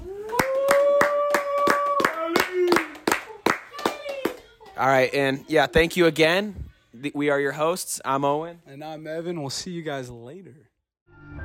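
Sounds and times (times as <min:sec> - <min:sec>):
round of applause: 0:00.0 - 0:04.6
speech: 0:04.8 - 0:10.7.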